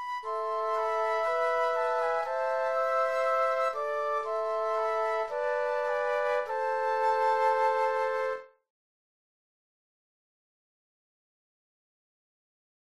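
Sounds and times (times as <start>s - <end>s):
classical flute trio playing a bourree: 0.0s - 8.5s.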